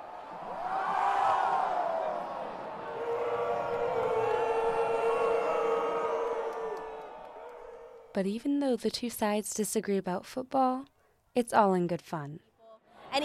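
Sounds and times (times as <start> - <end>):
stadium crowd cheering turning into jeering: 0.0 - 8.2
speech: 8.2 - 12.5.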